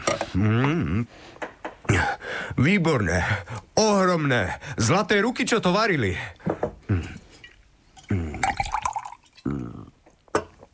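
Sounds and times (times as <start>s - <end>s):
speech: 0.4s - 6.4s
wine being poured into a glass: 7.4s - 9.8s.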